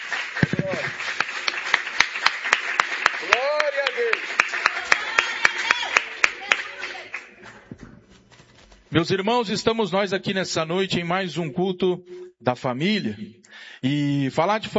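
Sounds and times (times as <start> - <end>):
audience clapping hands in rhythm: 0.0 - 7.8
voices calling out and cheering: 3.2 - 7.7
speech: 9.0 - 14.7.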